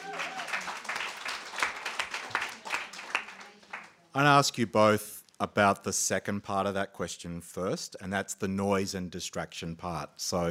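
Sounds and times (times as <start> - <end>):
audience applause: 0.0 - 4.0
speech: 4.2 - 10.4.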